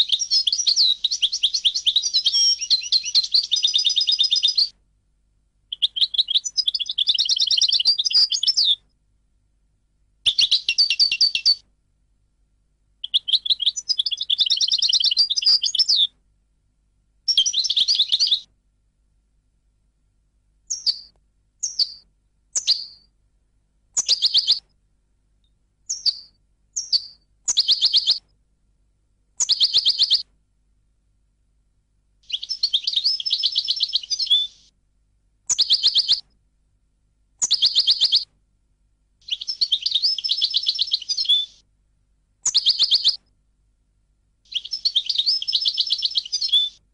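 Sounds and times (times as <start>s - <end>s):
European goldfinch song: 0.0s - 4.7s, 5.7s - 8.9s, 10.2s - 11.6s, 13.0s - 16.1s, 17.3s - 18.5s, 20.7s - 23.1s, 23.9s - 24.7s, 25.8s - 28.2s, 29.4s - 30.2s, 32.2s - 34.7s, 35.5s - 36.3s, 37.4s - 38.3s, 39.2s - 41.7s, 42.4s - 43.2s, 44.5s - 46.9s.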